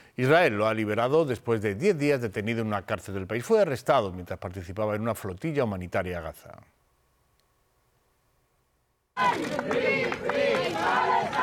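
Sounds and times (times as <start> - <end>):
speech: 0.2 - 6.8, 9.2 - 11.0
large crowd chanting a slogan at an airport arrival: 9.2 - 11.4.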